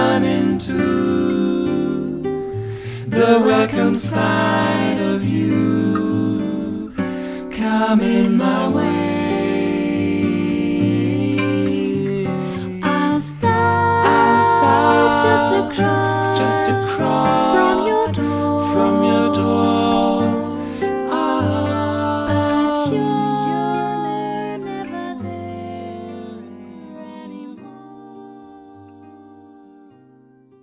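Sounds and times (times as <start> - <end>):
bossa nova music: 0.0 - 30.6.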